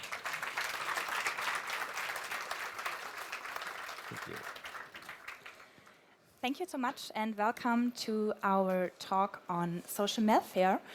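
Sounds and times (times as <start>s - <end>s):
audience applause welcoming speakers at a talk on welfare automation: 0.0s - 5.7s
speech: 4.1s - 4.6s, 6.4s - 10.9s.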